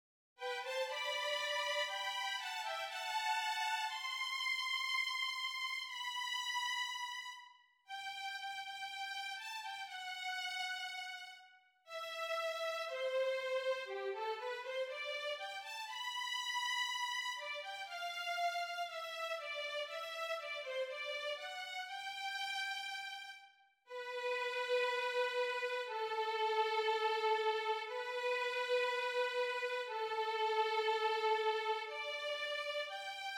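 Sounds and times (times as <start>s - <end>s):
violins: 0.4s - 33.3s.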